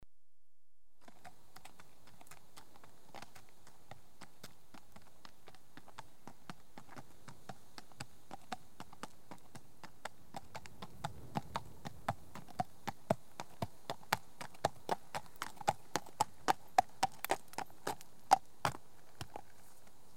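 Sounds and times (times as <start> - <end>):
horse hoofbeats: 1.0 - 20.1.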